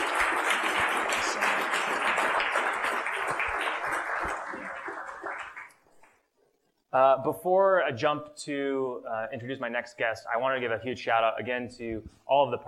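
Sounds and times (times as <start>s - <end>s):
audience applause for a guest at a Tennessee business event: 0.0s - 6.1s
speech: 7.0s - 12.6s.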